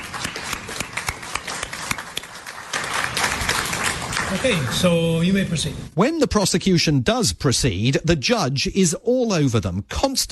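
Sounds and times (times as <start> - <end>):
audience applause: 0.0 - 5.3
speech: 4.3 - 10.3.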